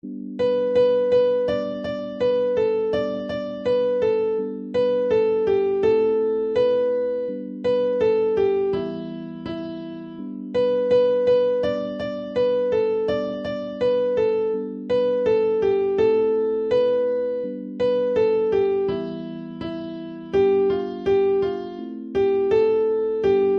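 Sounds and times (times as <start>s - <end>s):
keyboard music: 0.0s - 23.5s.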